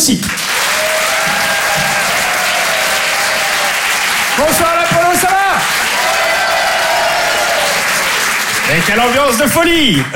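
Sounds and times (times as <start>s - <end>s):
speech: 0.0s - 0.6s, 4.4s - 5.3s, 8.7s - 10.1s
audience applause at a comedy show at the Apollo in Paris: 0.0s - 10.1s.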